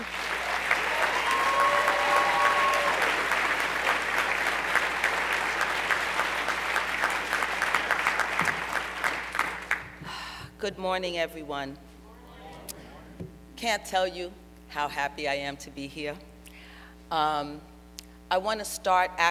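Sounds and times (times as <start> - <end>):
audience applause welcoming a speaker at an event on drug policy reform: 0.0 - 10.0
speech: 10.6 - 11.9, 13.6 - 16.3, 17.1 - 17.7, 18.3 - 19.2.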